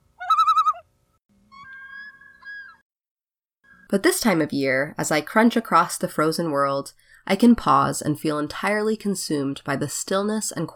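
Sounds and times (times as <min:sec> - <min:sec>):
lone loon yodel and cry on a summer night: 0:00.2 - 0:00.8, 0:01.5 - 0:02.8
speech: 0:03.9 - 0:10.7.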